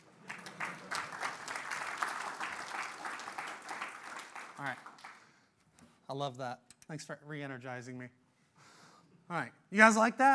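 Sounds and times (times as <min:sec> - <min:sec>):
audience clapping: 0:00.0 - 0:05.4
speech: 0:04.6 - 0:04.9, 0:06.1 - 0:08.2, 0:09.3 - 0:10.3.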